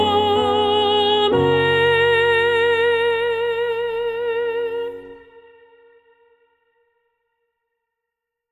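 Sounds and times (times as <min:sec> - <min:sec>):
soprano singing: 0:00.0 - 0:06.5.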